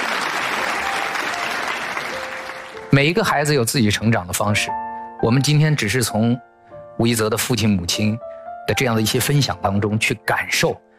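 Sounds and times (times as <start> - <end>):
audience applauding: 0.0 - 2.9
speech: 2.9 - 10.8.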